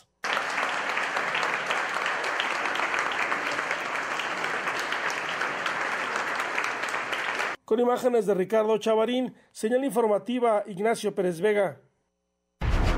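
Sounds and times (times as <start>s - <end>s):
loud prolonged applause of mourners: 0.0s - 7.6s
speech: 7.7s - 11.8s.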